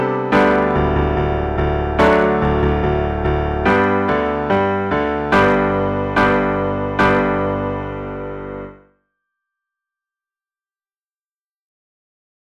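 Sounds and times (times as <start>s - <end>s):
piano duet: 0.0s - 8.9s.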